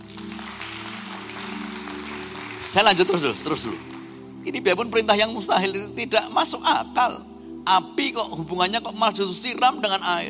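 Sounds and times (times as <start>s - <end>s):
crowd applause: 0.0s - 4.2s
speech: 2.6s - 10.2s.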